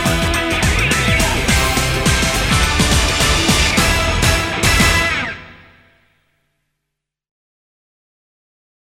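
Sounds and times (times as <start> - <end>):
karaoke singing: 0.0 - 5.6.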